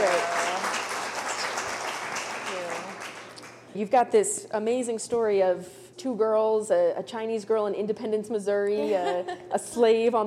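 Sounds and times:
audience applause for a book at a live author event: 0.0 - 3.5
speech: 3.8 - 10.2.

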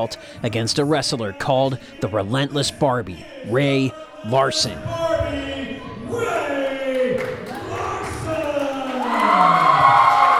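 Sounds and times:
speech: 0.0 - 5.0
wrestling arena crowd cheering: 5.1 - 10.3.

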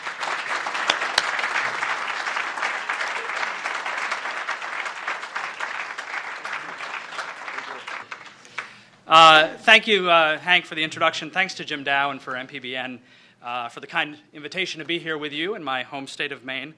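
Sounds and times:
audience applause at a Maine MPBN event: 0.0 - 8.8
speech: 9.1 - 16.7.

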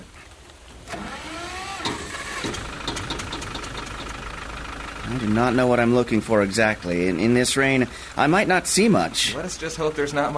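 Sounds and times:
old motor car engine idling: 0.8 - 10.3
clicks and rattles: 1.8 - 4.2
speech: 5.1 - 10.3.

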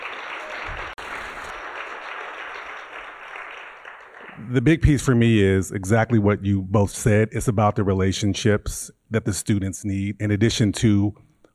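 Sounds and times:
audience round of applause: 0.0 - 4.7
speech: 4.4 - 11.3.

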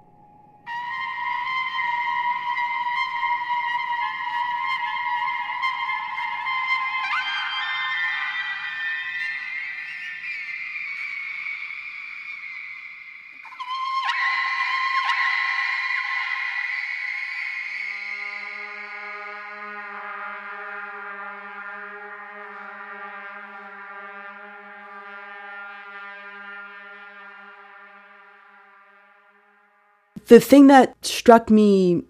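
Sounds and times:
whale song: 0.0 - 29.7
speech: 30.3 - 32.0.

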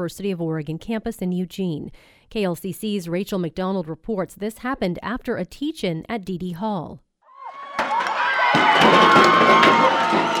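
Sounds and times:
speech: 0.0 - 7.0
crowd cheering as pioneer statue is pulled down on University of Oregon campus: 7.3 - 10.3.

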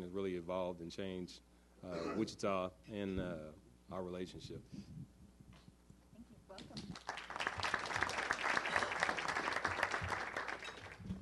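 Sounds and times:
speech: 0.0 - 5.1
audience applause: 7.0 - 11.2.

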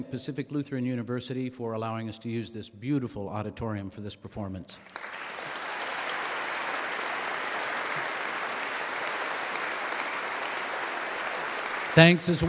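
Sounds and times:
speech: 0.0 - 5.2, 12.0 - 12.4
audience applause: 4.9 - 12.4.

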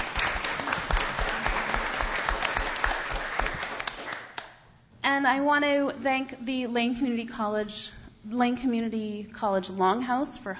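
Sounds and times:
audience applause: 0.0 - 4.4
speech: 5.2 - 10.5.

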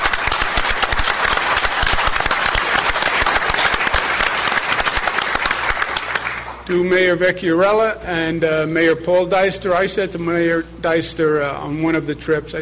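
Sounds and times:
round of applause: 0.0 - 6.6
speech: 6.7 - 12.6.

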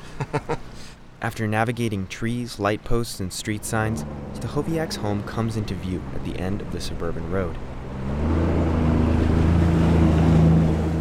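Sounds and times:
jet ski engine droning on floodwater: 0.0 - 10.9
speech: 1.2 - 8.5
rushing water: 3.6 - 10.9.

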